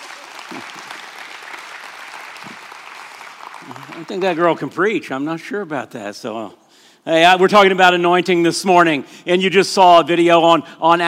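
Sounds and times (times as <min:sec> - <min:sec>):
audience applause: 0:00.0 - 0:04.6
speech: 0:00.5 - 0:01.0, 0:03.6 - 0:11.0.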